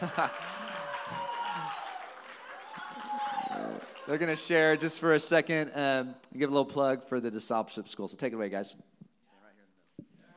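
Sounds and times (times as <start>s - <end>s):
speech: 0.0s - 1.8s, 4.1s - 9.0s
church congregation clapping for guests during a service: 0.0s - 5.0s.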